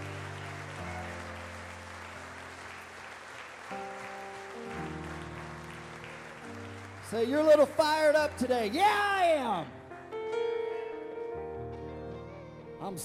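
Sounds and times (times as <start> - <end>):
audience applause: 0.0 - 9.6
speech: 7.1 - 9.8, 12.9 - 13.0.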